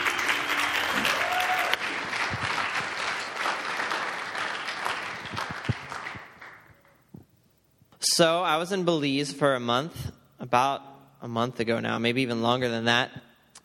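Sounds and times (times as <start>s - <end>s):
audience applause welcoming a young speaker: 0.0s - 6.9s
speech: 8.2s - 13.2s.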